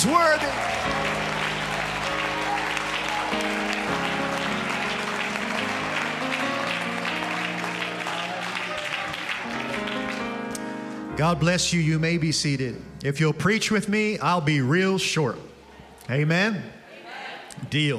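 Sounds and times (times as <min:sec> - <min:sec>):
speech: 0:00.0 - 0:00.6, 0:11.2 - 0:15.5, 0:16.1 - 0:16.8, 0:17.6 - 0:17.9
audience clapping hands in worship: 0:00.0 - 0:10.8
sustained music: 0:00.0 - 0:15.6.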